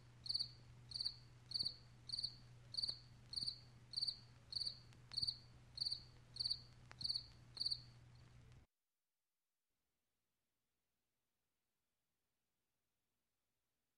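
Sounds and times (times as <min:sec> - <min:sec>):
cricket chirping: 0:00.2 - 0:08.0.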